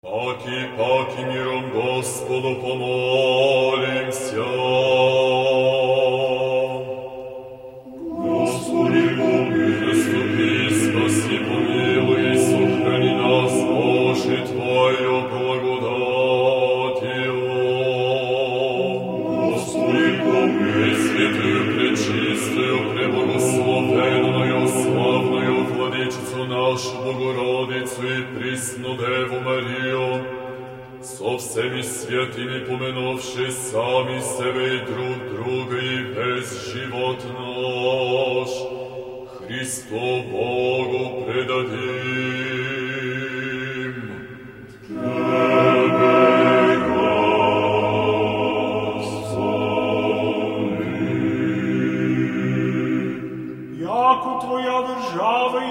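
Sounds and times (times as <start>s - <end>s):
Bulgarian liturgical chanting: 0.0s - 55.6s.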